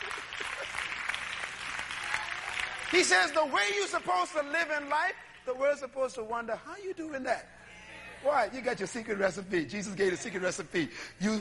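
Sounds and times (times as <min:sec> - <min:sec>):
audience clapping at a church sermon: 0:00.0 - 0:05.9
speech: 0:02.9 - 0:07.6, 0:08.2 - 0:11.3.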